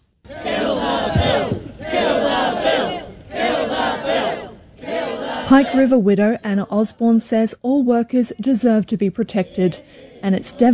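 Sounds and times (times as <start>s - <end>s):
large protest rally crowd shouting a chant in unison: 0.3s - 6.6s, 8.4s - 10.7s
speech: 5.5s - 10.7s.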